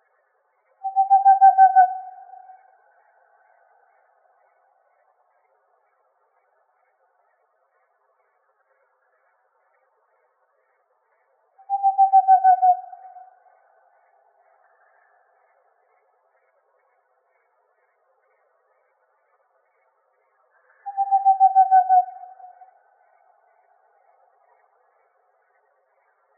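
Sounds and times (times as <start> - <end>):
Whiskered Screech-Owl calling: 0.8 - 2.6, 11.6 - 13.4, 20.7 - 22.8.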